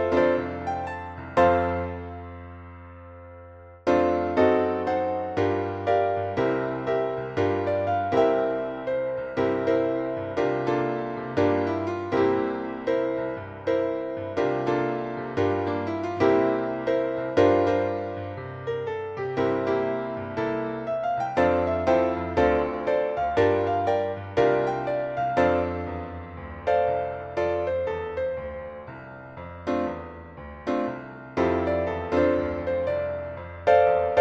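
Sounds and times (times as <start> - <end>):
piano part: 0.0 - 34.1.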